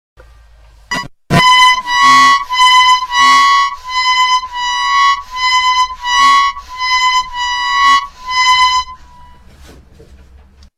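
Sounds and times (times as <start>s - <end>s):
harmonica: 0.9s - 9.5s.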